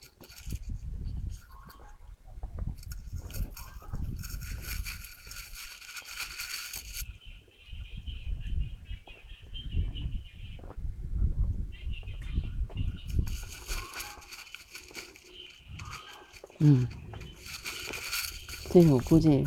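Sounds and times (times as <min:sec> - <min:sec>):
birdsong in the mountains: 0:00.0 - 0:19.4
low uneven rumble of wind-like noise: 0:00.4 - 0:05.6, 0:07.0 - 0:19.4
speech: 0:16.6 - 0:17.0, 0:18.8 - 0:19.4.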